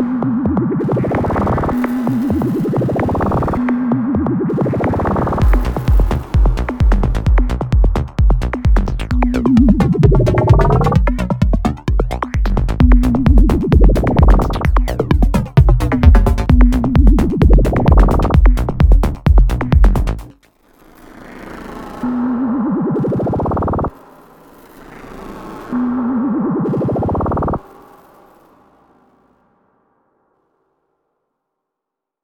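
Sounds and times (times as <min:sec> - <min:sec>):
minimal techno music: 0:00.0 - 0:20.4, 0:22.1 - 0:24.0, 0:25.8 - 0:27.6.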